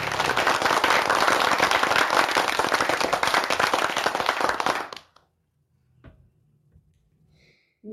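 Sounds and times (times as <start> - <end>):
crowd clapping: 0.0 - 5.2.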